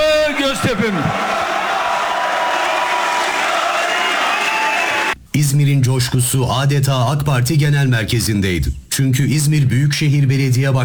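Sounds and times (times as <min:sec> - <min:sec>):
crowd cheering and chanting at an AK Party rally in the party headquarters hall: 0:00.0 - 0:05.2
speech: 0:05.4 - 0:10.8.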